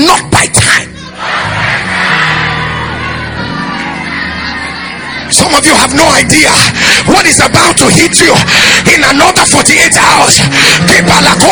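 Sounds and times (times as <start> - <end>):
audience shouting: 0.9 - 6.2
speech: 5.6 - 11.4.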